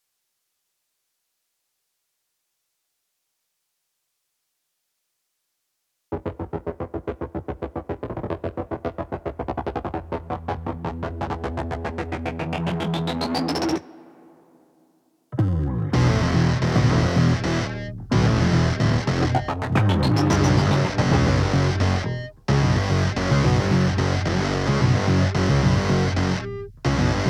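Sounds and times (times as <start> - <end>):
basses at 110 BPM: 6.2 - 13.8, 15.4 - 27.2.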